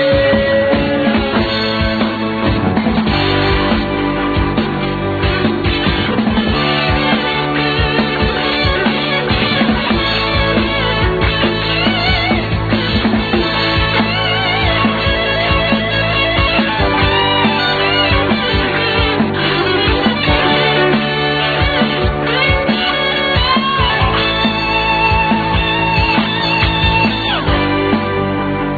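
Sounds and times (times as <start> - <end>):
guitar solo: 0.1 - 28.7.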